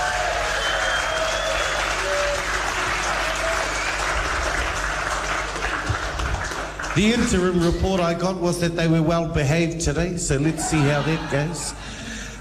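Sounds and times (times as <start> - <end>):
round of applause for judges: 0.0 - 8.0
speech: 7.0 - 12.3
laughter: 10.3 - 12.3.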